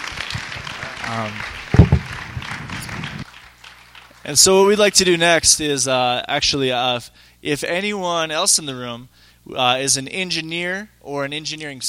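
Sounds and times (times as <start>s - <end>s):
audience round of applause: 0.0s - 4.2s
speech: 1.1s - 1.6s, 4.3s - 11.8s.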